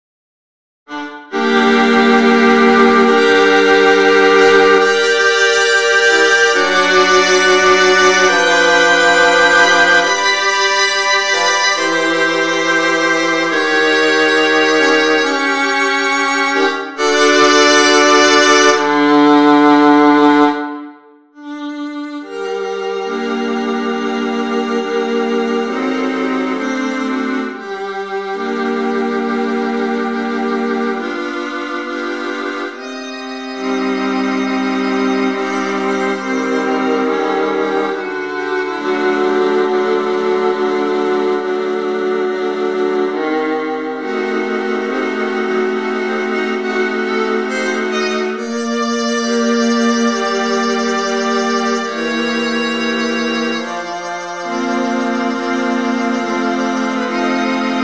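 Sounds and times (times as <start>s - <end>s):
viola quartet potpourri: 0.9s - 20.8s, 21.4s - 57.8s.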